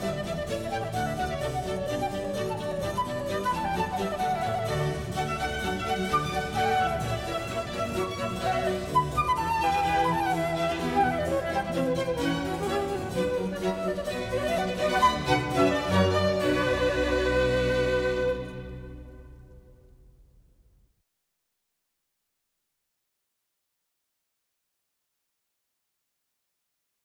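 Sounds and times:
orchestral suite movement in B minor: 0.0 - 19.8.

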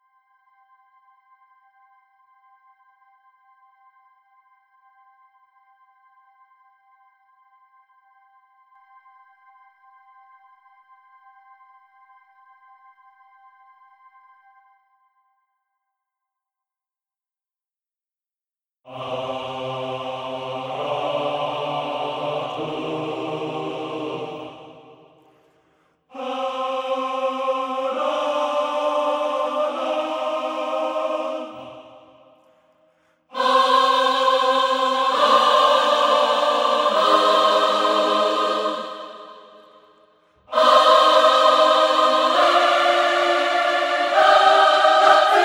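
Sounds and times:
choir stem: 18.9 - 45.4.

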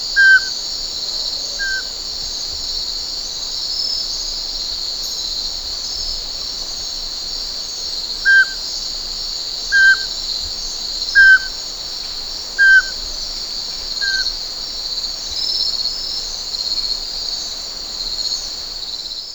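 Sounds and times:
nature sounds: 0.0 - 19.3
sych vorobinii pygmy owl: 8.3 - 8.6, 9.7 - 10.1, 11.2 - 11.5, 12.6 - 12.9.

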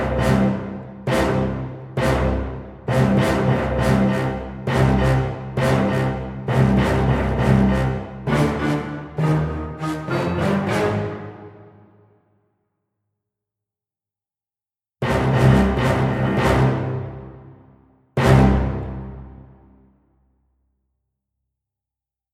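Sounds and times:
low brass section playing staccato tutti: 0.0 - 11.9, 15.0 - 19.8.

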